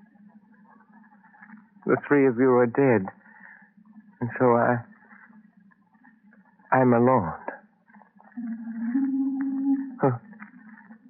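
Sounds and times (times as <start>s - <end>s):
speech: 1.9s - 3.2s, 4.2s - 4.9s, 6.7s - 7.4s
owl hooting: 8.3s - 10.8s.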